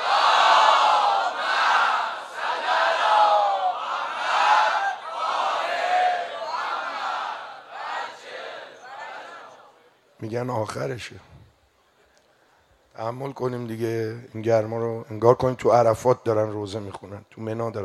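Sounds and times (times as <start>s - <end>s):
crowd chanting salawat in unison: 0.0s - 9.9s
speech: 10.2s - 11.3s, 13.0s - 17.8s.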